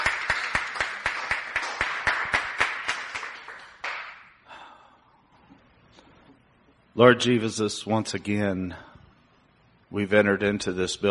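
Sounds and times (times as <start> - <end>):
audience clapping: 0.0 - 4.4
speech: 7.0 - 8.9, 9.9 - 11.0.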